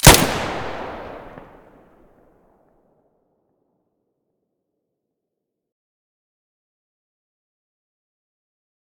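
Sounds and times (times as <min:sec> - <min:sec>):
weapon muzzle blasts: 0:00.0 - 0:01.6.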